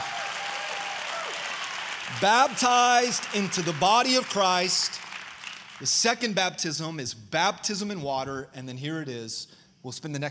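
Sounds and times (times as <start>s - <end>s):
audience applauding: 0.0s - 6.2s
speech: 2.1s - 5.0s, 5.8s - 10.2s.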